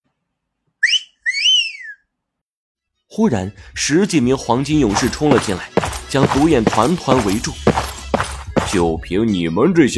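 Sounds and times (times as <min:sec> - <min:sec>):
whistling: 0:00.8 - 0:02.2
speech: 0:03.2 - 0:07.7, 0:08.7 - 0:09.9.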